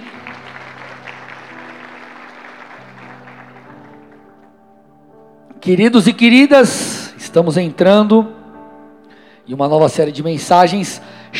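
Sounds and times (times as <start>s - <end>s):
audience applause: 0.0s - 4.5s
speech: 5.6s - 8.4s, 9.5s - 11.3s.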